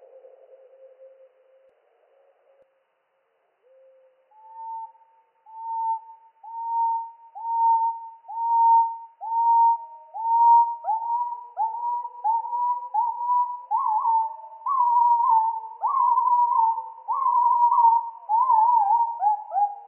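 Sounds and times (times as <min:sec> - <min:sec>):
firecrest song slowed down: 0:03.7 - 0:19.8.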